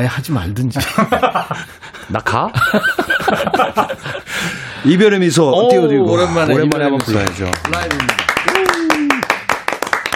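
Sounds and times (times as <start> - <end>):
speech: 0.0 - 8.3
laughter: 0.8 - 1.9, 2.6 - 4.6
audience clapping: 6.4 - 10.1.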